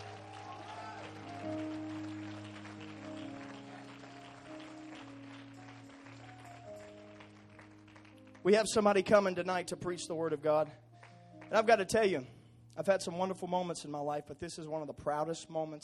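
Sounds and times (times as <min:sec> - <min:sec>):
audience clapping: 0:00.0 - 0:09.0, 0:11.0 - 0:11.8
speech: 0:08.5 - 0:10.8, 0:11.5 - 0:15.8.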